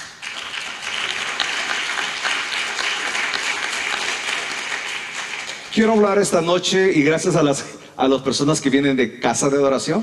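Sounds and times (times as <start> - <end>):
audience applause: 0.0 - 6.2
speech: 5.8 - 10.0.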